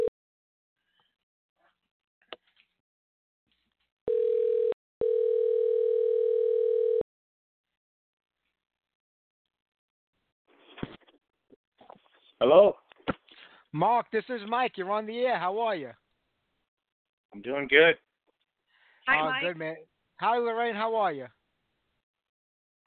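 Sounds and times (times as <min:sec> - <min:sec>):
telephone dial tone while radio show guests are dialed in: 0:04.1 - 0:07.0
speech: 0:12.4 - 0:12.8, 0:13.7 - 0:16.0, 0:17.3 - 0:18.1, 0:19.0 - 0:21.4.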